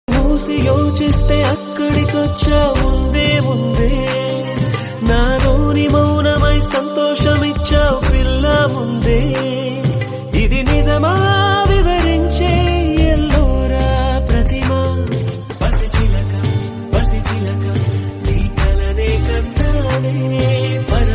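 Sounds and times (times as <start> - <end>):
Tamil romantic background music ringtone: 0.1 - 21.1.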